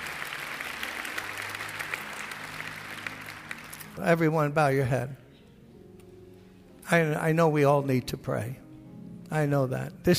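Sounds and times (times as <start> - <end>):
audience clapping: 0.0 - 4.4
speech: 4.0 - 5.2, 6.9 - 8.6, 9.3 - 10.1.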